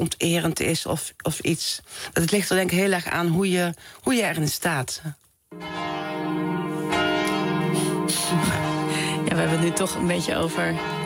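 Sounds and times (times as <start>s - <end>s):
speech: 0.0s - 5.8s, 9.3s - 11.0s
Catholic church bells ringing: 5.5s - 11.0s.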